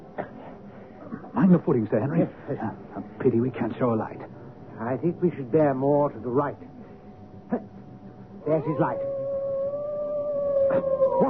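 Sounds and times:
speech: 1.5 - 6.7, 7.5 - 7.8, 8.4 - 9.1, 10.7 - 11.2
hound howling across the moor: 8.4 - 11.2
man calling out: 8.5 - 9.1.

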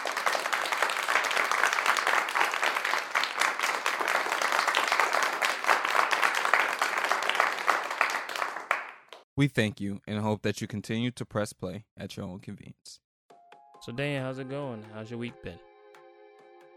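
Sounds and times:
round of applause: 0.0 - 9.3
speech: 9.4 - 13.0, 13.8 - 15.7.

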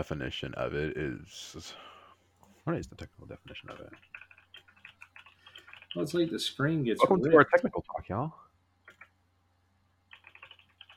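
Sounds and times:
speech: 0.0 - 1.9, 2.6 - 4.3, 6.0 - 8.4
typing on a computer keyboard: 3.5 - 6.0, 8.8 - 9.1, 10.1 - 10.9.

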